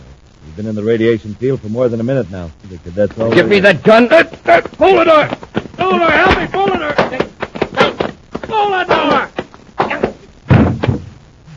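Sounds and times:
speech: 0:00.6 - 0:07.3
left hook punch sound effect in a radio drama fight scene: 0:04.3 - 0:11.2.

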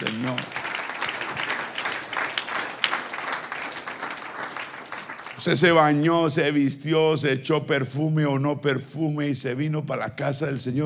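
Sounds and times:
speech: 0:00.0 - 0:00.6, 0:05.4 - 0:10.8
audience applauding: 0:00.0 - 0:06.0.

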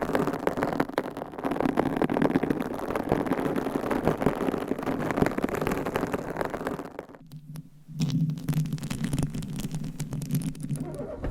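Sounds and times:
massage sounds: 0:00.0 - 0:11.2
scratching: 0:00.0 - 0:11.2.

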